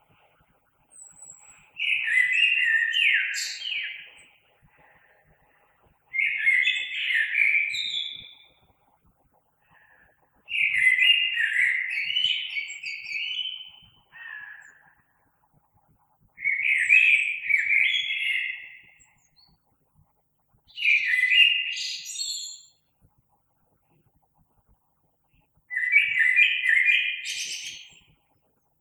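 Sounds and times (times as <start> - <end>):
common blackbird singing: 0.9 - 4.4, 6.1 - 8.6, 10.5 - 15.0, 16.4 - 19.6, 20.7 - 22.7, 25.7 - 28.1.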